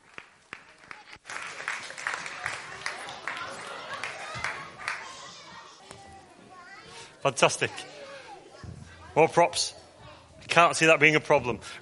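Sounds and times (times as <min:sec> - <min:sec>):
audience applause: 0:00.0 - 0:05.4
speech: 0:07.2 - 0:08.0, 0:09.2 - 0:09.8, 0:10.6 - 0:11.8.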